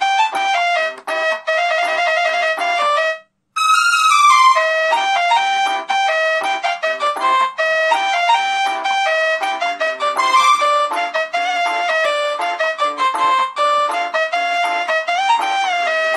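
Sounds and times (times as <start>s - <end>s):
Arabic song on a Nokia phone: 0.0s - 16.1s.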